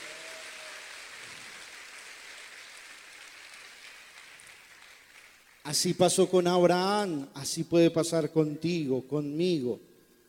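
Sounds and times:
audience applauding: 0:00.0 - 0:05.6
speech: 0:05.7 - 0:09.9.

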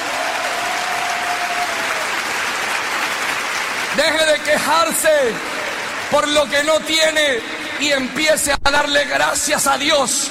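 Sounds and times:
audience applause: 0:00.0 - 0:07.4
speech: 0:04.0 - 0:05.5, 0:06.1 - 0:10.2.

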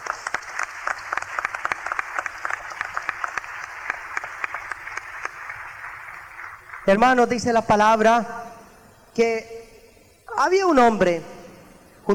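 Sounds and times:
audience applause: 0:00.0 - 0:06.9
speech: 0:06.9 - 0:08.4, 0:09.2 - 0:09.6, 0:10.4 - 0:11.3.

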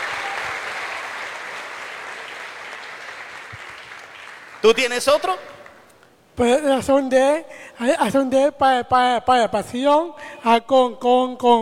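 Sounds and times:
audience applause: 0:00.0 - 0:05.8
speech: 0:04.6 - 0:05.5, 0:06.4 - 0:11.6.

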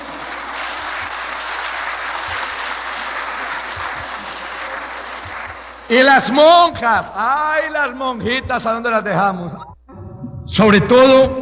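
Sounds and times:
audience applause: 0:00.0 - 0:06.6
speech: 0:05.9 - 0:09.6, 0:10.5 - 0:11.3.

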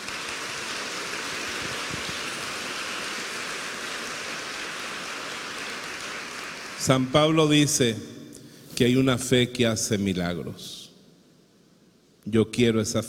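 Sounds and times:
audience applause: 0:00.0 - 0:07.0
speech: 0:06.8 - 0:08.2, 0:08.8 - 0:10.8, 0:12.2 - 0:13.0.

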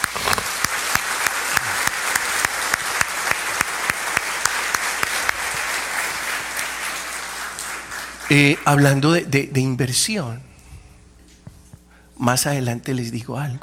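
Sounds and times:
applause: 0:00.0 - 0:09.1
speech: 0:08.3 - 0:10.5, 0:12.2 - 0:13.6.

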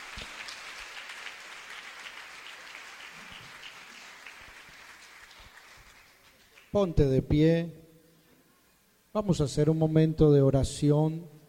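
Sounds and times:
audience applauding: 0:00.0 - 0:06.8
speech: 0:06.7 - 0:07.8, 0:09.2 - 0:11.3.

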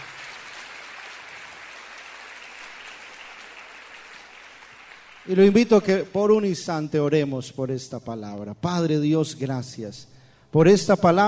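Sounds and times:
audience applauding: 0:00.0 - 0:06.2
speech: 0:05.2 - 0:11.2.

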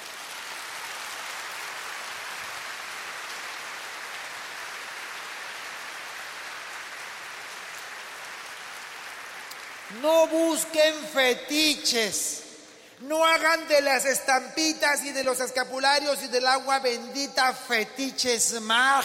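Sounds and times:
audience applauding: 0:00.0 - 0:11.0
speech: 0:09.9 - 0:12.4, 0:13.0 - 0:19.0.

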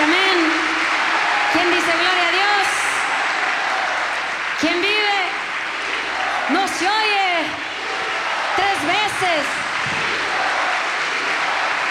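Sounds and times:
audience applauding: 0:00.0 - 0:11.8.

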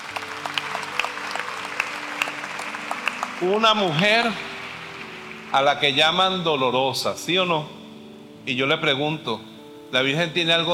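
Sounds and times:
audience applauding: 0:00.0 - 0:06.7
speech: 0:03.4 - 0:04.5, 0:05.5 - 0:07.8, 0:08.4 - 0:10.7.

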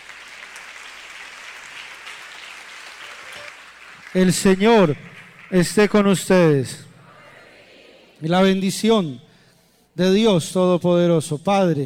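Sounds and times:
audience applauding: 0:00.0 - 0:06.0
speech: 0:04.1 - 0:06.9, 0:08.2 - 0:09.3, 0:10.0 - 0:11.8.

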